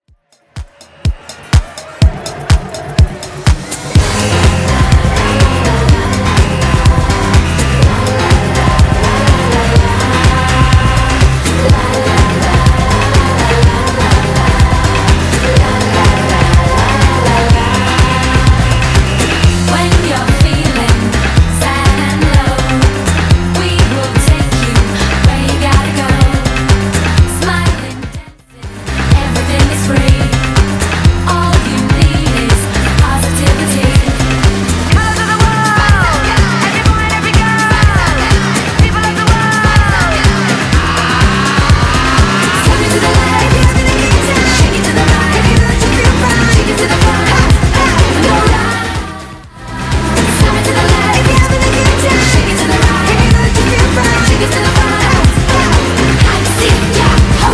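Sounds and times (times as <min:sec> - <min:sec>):
90s dance music track: 0:00.0 - 0:57.5.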